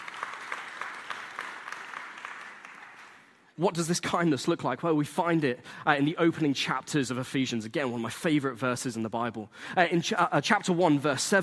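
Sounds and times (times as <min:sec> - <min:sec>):
audience applause: 0:00.0 - 0:03.4
speech: 0:03.6 - 0:11.4.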